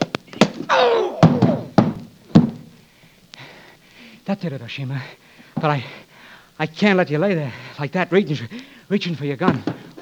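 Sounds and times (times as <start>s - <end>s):
roundhouse punches landing in a radio drama fight: 0.0s - 2.7s
falling vocal cry: 0.7s - 1.7s
speech: 4.3s - 6.0s, 6.6s - 9.9s.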